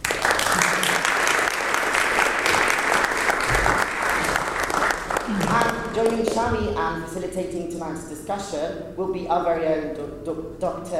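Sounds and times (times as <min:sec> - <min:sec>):
audience applause welcoming a Catalan author: 0:00.0 - 0:05.9
speech: 0:06.0 - 0:10.9.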